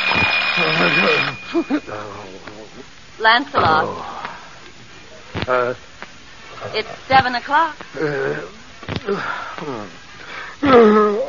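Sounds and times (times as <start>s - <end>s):
alarm clock ringing: 0.0s - 2.1s
speech: 0.6s - 4.2s, 5.5s - 5.9s, 6.6s - 10.0s, 10.6s - 11.2s.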